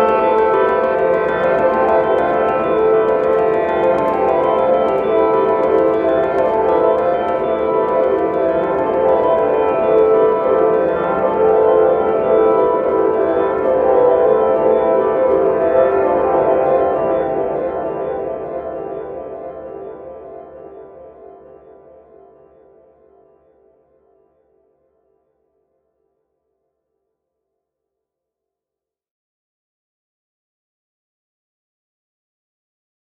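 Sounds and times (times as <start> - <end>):
dark piano loop: 0.0 - 21.2.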